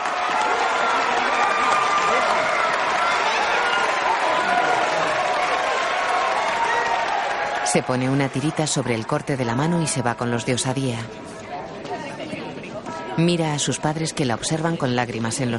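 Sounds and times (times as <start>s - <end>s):
voices shouting: 0.0s - 8.9s
seated crowd of young Dauntless members clapping: 0.0s - 9.6s
speech: 7.7s - 11.4s, 13.2s - 15.5s.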